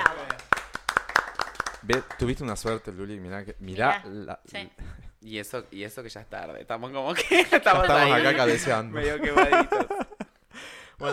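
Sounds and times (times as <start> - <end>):
applause: 0.0 - 2.9
speech: 1.9 - 10.2
laughter: 7.2 - 10.3.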